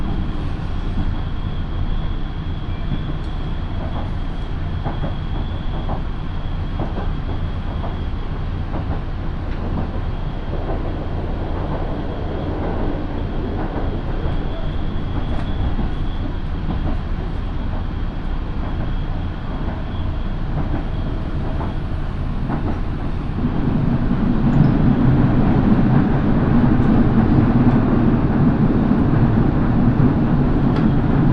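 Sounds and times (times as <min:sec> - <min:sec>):
Minobu Line local train wheels and motor rumble: 0:00.0 - 0:31.3.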